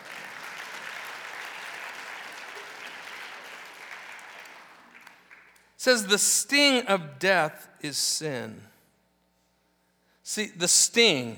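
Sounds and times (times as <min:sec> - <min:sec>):
audience clapping: 0:00.0 - 0:06.1
speech: 0:05.8 - 0:08.7, 0:10.4 - 0:11.3.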